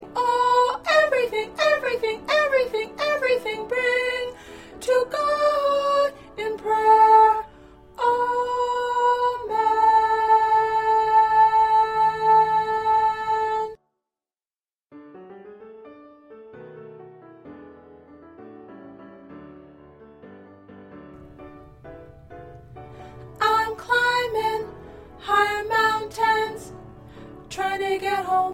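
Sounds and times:
soprano singing: 0.0s - 13.8s, 21.2s - 28.5s.

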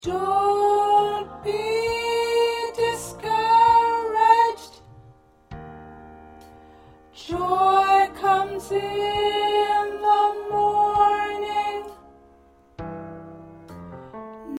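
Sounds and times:
choir with soprano: 0.0s - 4.8s, 7.2s - 12.0s.

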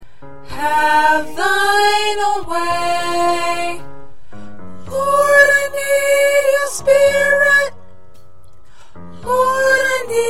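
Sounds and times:
soprano singing: 0.4s - 3.9s, 4.8s - 7.8s, 9.2s - 10.2s.

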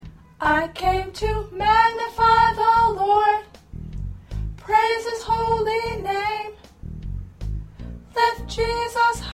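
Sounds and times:
soprano singing choir parts: 0.4s - 3.6s, 4.6s - 6.6s, 8.1s - 9.3s.

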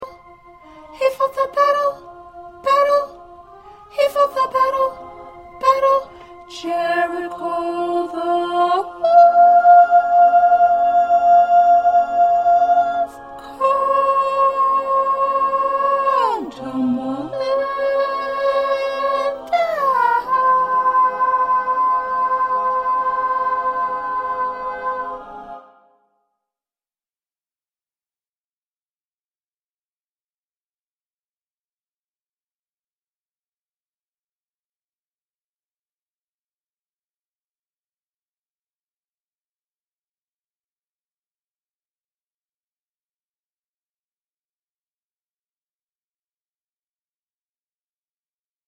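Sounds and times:
soprano voice: 0.0s - 25.6s.

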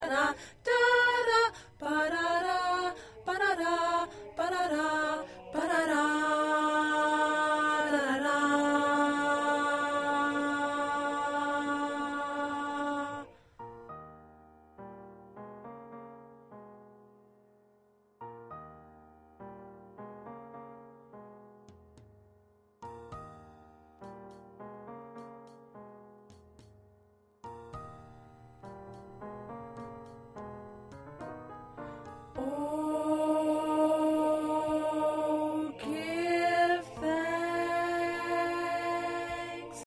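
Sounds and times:
soprano singing: 0.0s - 13.4s, 31.8s - 39.8s.

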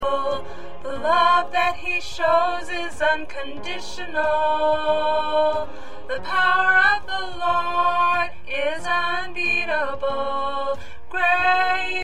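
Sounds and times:
alto choir singing: 0.0s - 12.0s.

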